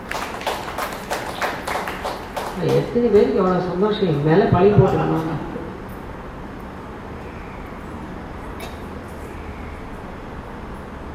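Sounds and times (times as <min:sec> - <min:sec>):
audience clapping: 0:00.0 - 0:03.4
noisy background: 0:00.0 - 0:11.1
speech: 0:02.6 - 0:05.5.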